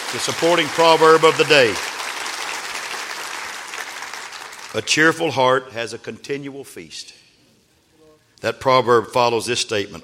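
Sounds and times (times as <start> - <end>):
audience clapping hands: 0.0 - 5.2
speech: 0.1 - 2.0, 4.7 - 7.2, 8.4 - 10.0.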